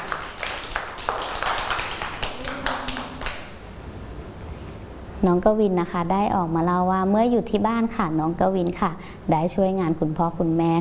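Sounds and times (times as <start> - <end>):
group of children clapping: 0.0 - 3.6
speech: 5.2 - 10.7.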